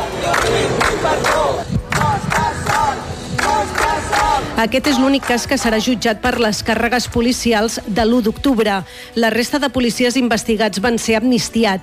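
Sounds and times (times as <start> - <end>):
crowd shouting cheers of support: 0.0 - 5.7
speech: 4.6 - 11.8.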